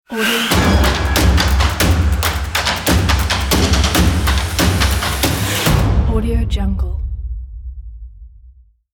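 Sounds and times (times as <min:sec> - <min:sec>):
epic drum logo: 0:00.4 - 0:08.7.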